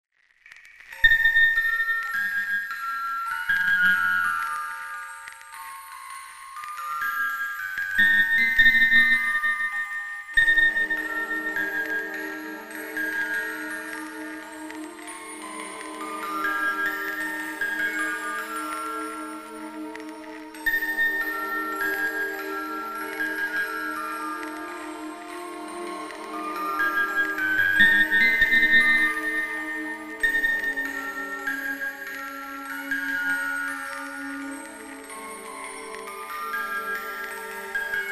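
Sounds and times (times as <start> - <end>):
music box: 0.5 - 38.1
violin: 10.3 - 38.1.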